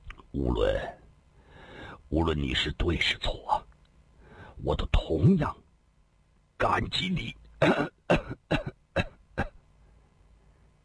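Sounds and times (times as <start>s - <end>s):
speech: 0.4s - 1.0s, 2.1s - 3.6s, 4.6s - 5.6s, 6.6s - 9.1s
person coughing: 7.6s - 9.6s.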